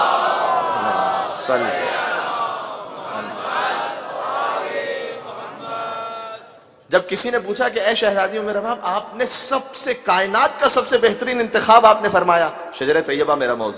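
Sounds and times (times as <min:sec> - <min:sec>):
congregation loudly chanting salawat at a religious gathering: 0:00.0 - 0:06.7
speech: 0:01.5 - 0:01.9, 0:06.9 - 0:13.7.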